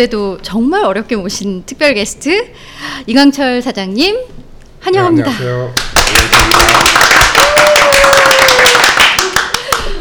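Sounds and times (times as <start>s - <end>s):
speech: 0.0s - 6.9s
clapping: 5.8s - 10.0s.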